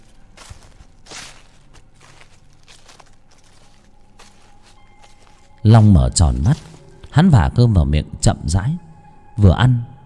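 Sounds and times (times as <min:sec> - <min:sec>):
rustling footsteps: 0:00.0 - 0:07.2
speech: 0:05.6 - 0:09.9.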